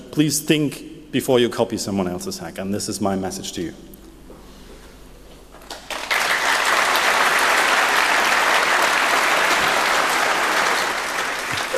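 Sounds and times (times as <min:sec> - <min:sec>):
speech: 0:00.1 - 0:04.0
audience applause after a talk: 0:05.7 - 0:11.7.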